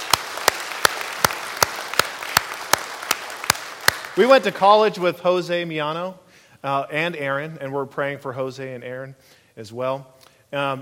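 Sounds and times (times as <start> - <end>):
audience applause: 0.0 - 4.8
speech: 4.2 - 10.8.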